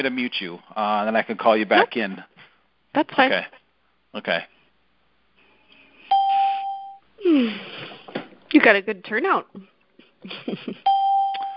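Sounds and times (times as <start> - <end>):
speech: 0.0 - 4.5, 7.3 - 7.9, 8.5 - 11.0
conference-call join beep: 6.1 - 7.0, 10.9 - 11.5.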